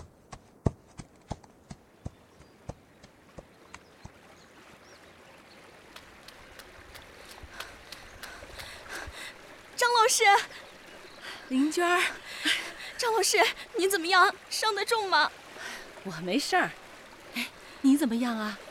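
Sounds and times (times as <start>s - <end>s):
family horse's hooves clip-clopping as it is led out: 0.0s - 4.2s
speech: 10.2s - 10.6s, 11.5s - 12.2s, 13.0s - 15.4s, 16.0s - 16.8s, 17.4s - 18.6s.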